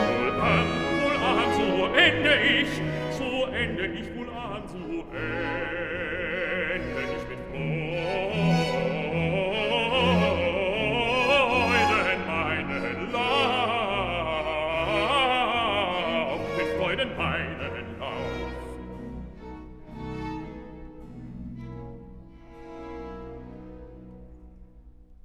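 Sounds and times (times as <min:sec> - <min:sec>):
bass voice recitative with chorale: 0:00.0 - 0:18.9.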